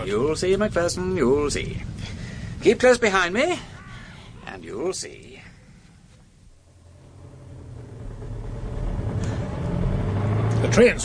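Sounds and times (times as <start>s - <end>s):
speech: 0.0s - 3.7s, 4.6s - 5.3s, 10.7s - 11.0s
car approaching from behind: 6.5s - 11.0s.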